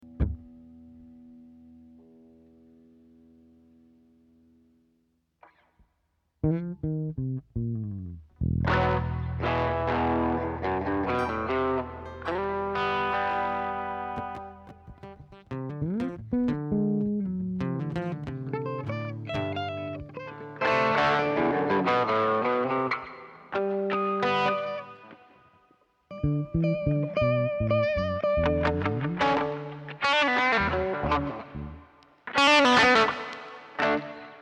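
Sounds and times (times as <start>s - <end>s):
bass: 0.0s - 2.0s, 6.4s - 13.4s, 14.1s - 20.3s, 26.1s - 32.0s
guitars: 0.0s - 34.4s.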